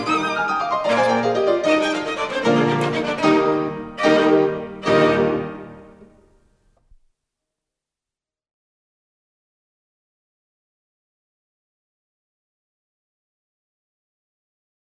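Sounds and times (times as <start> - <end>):
piano quintet: 0.0 - 6.3.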